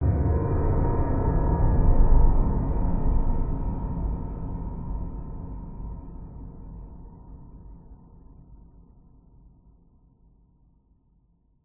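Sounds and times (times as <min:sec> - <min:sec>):
dark ominous scary horror hit: 0:00.0 - 0:07.7.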